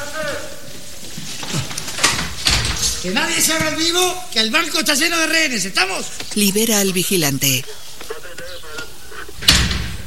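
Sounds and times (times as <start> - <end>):
door opened during a bank robbery: 1.5 - 3.8, 9.4 - 10.0
speech: 3.0 - 7.8
laughter: 6.8 - 10.0.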